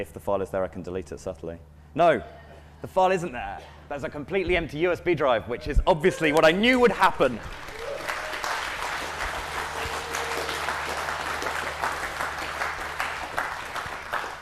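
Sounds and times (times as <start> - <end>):
speech: 0.0 - 7.8
audience applause: 7.1 - 14.4.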